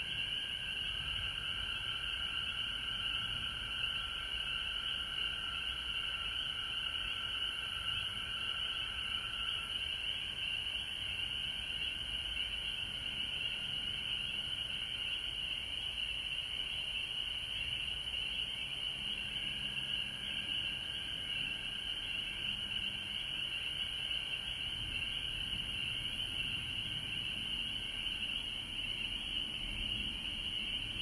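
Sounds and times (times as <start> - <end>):
frogs in Georgia: 0.0 - 31.0.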